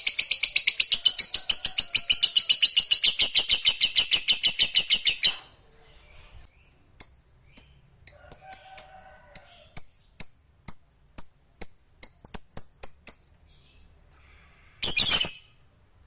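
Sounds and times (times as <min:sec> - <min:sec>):
lovebird chirping: 0:00.0 - 0:13.9, 0:14.8 - 0:15.7.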